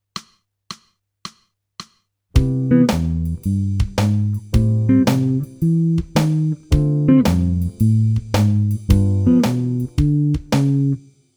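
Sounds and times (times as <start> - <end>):
jazz music: 2.4 - 11.0.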